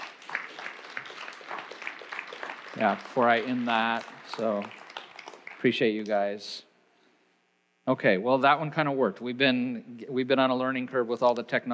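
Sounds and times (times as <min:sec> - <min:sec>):
audience applauding: 0:00.0 - 0:06.2
speech: 0:02.8 - 0:04.8, 0:05.6 - 0:06.7, 0:07.9 - 0:11.7.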